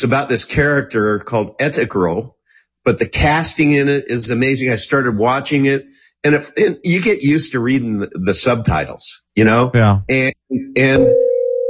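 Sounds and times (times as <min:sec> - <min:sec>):
speech: 0:00.0 - 0:11.2
telephone line tone signaling an incoming caller: 0:10.9 - 0:11.6.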